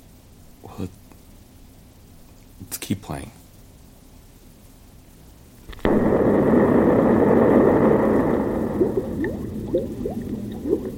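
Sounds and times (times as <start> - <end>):
speech: 0.7 - 1.0, 2.7 - 3.4
gurgling liquid bubbles: 5.7 - 10.9
loud blast: 5.7 - 10.9.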